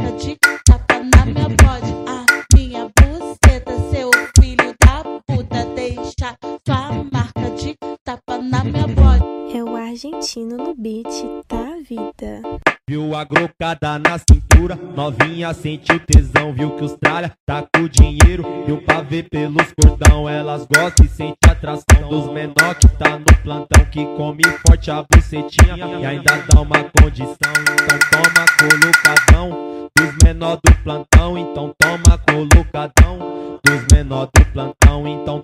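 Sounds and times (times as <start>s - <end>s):
arrochadeira music for paredão sound system: 0.0s - 5.1s, 12.6s - 35.4s.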